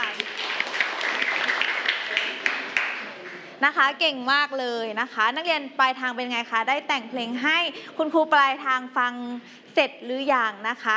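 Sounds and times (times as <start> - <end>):
applause: 0.0 - 3.5
speech: 3.6 - 10.9.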